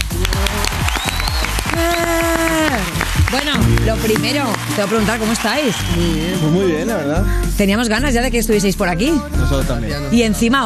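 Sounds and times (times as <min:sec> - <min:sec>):
applause: 0:00.0 - 0:06.7
speech: 0:03.3 - 0:10.6.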